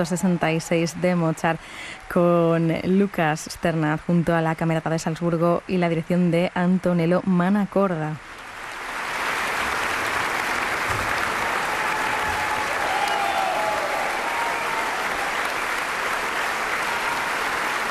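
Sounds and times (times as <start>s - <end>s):
enthusiastic concert audience in Carinthia applauding and calling back a pianist: 0.0s - 2.2s, 8.4s - 17.8s
speech: 0.0s - 8.4s.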